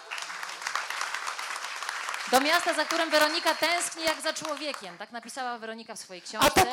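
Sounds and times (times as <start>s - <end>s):
audience applause: 0.0s - 4.9s
speech: 2.3s - 6.7s.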